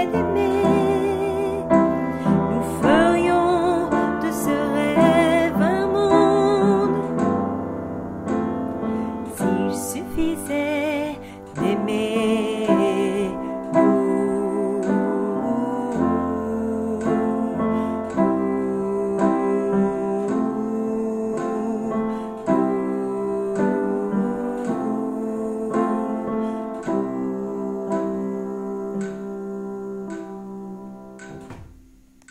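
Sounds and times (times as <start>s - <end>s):
alto melody: 0.0s - 32.3s.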